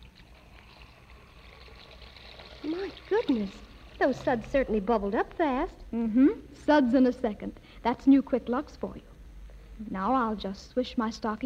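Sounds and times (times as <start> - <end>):
tap water running into a basin: 0.0 - 5.5
speech: 2.6 - 9.1, 9.8 - 11.4.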